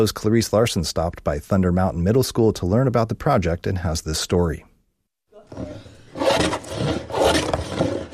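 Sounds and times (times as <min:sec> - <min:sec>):
speech: 0:00.0 - 0:04.7
chipping spruce wood: 0:05.5 - 0:08.1
filing spruce wood: 0:05.5 - 0:08.1
sanding spruce wood in a classroom: 0:05.5 - 0:08.1.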